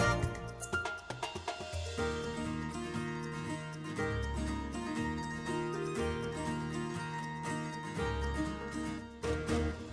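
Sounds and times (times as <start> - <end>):
music: 0.0 - 9.9.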